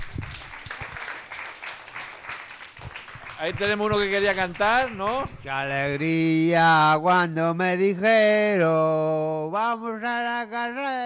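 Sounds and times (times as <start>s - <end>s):
crowd applause: 0.0s - 6.4s
speech: 3.4s - 11.0s.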